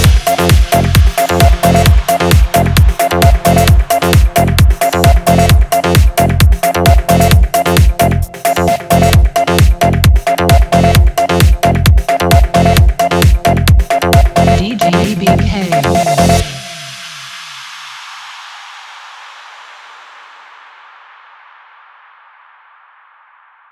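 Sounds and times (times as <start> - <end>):
remix music: 0.0 - 17.9.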